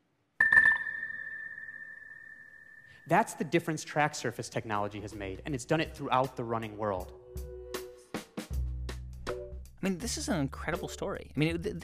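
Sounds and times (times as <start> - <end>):
electronic beeps marking runners' finishes: 0.4 - 3.0
steady high-pitched tone: 0.4 - 3.1
speech: 3.0 - 7.2, 9.8 - 11.8.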